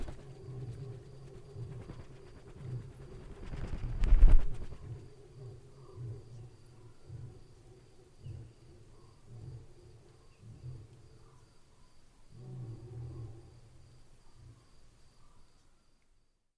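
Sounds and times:
lions: 0.0 - 4.0, 4.6 - 15.8
insect-hunting bats flapping wings: 0.0 - 5.1.

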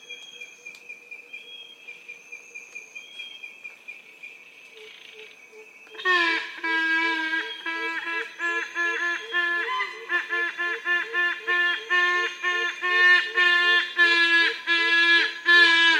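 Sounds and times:
yellow-casqued hornbill honking calls: 5.9 - 15.9.

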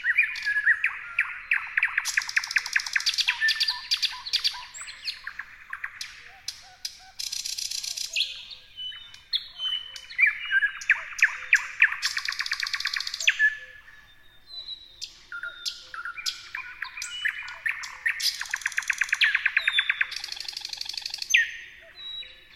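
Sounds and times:
thrush nightingales singing: 0.0 - 22.5.

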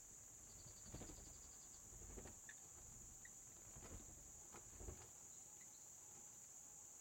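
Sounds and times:
bats flapping their wings inside a cave: 0.7 - 2.5, 3.5 - 5.2.

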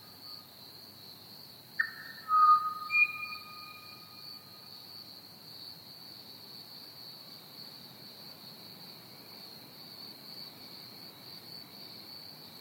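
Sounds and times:
Pied Butcherbird whistling: 1.8 - 4.0.

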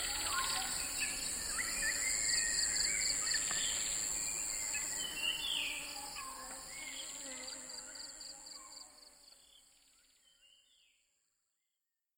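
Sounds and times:
frogs in swamp: 0.0 - 9.3
insects in swamp: 0.0 - 11.2.

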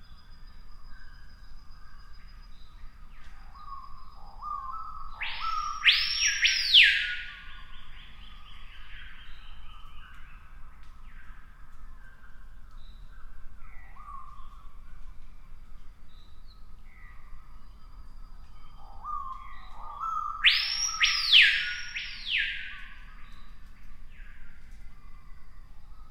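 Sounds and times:
screaming piha loud arching whistled notes: 0.0 - 10.1, 17.0 - 23.4.

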